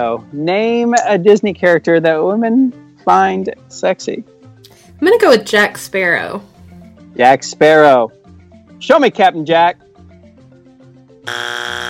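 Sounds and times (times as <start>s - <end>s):
speech: 0.0s - 4.3s, 5.0s - 6.5s, 7.1s - 8.2s, 8.8s - 9.8s, 11.2s - 11.6s
game show wrong-answer strike buzzer: 11.2s - 11.8s.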